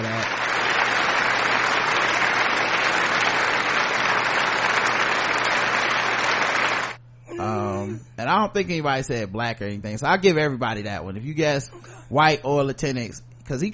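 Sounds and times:
applause sound effect: 0.0s - 7.0s
speech: 8.3s - 13.7s.

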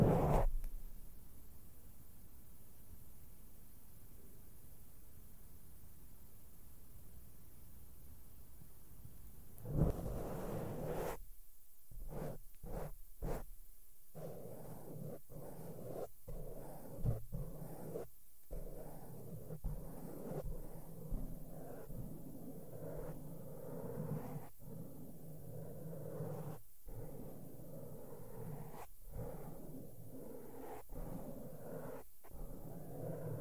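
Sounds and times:
makeup brushes rubbing softly over a microphone: 0.0s - 0.7s, 9.6s - 11.3s, 11.9s - 33.3s.

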